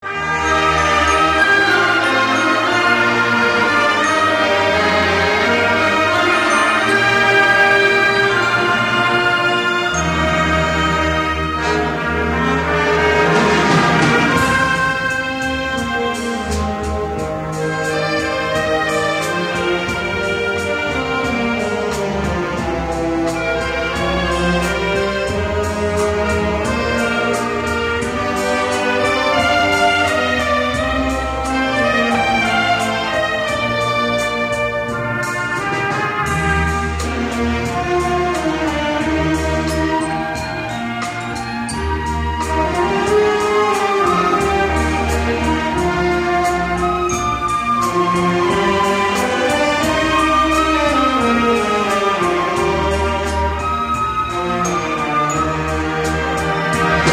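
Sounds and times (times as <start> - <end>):
instrumental music: 0.0 - 57.1.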